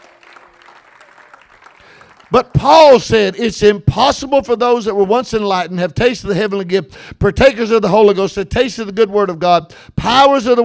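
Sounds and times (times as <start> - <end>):
audience clapping hands: 0.0 - 3.1
speech: 2.3 - 10.6.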